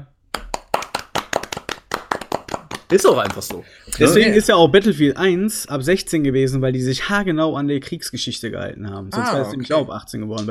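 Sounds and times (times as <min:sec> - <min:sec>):
applause, hand clapping: 0:00.3 - 0:04.0
speech: 0:02.9 - 0:10.4.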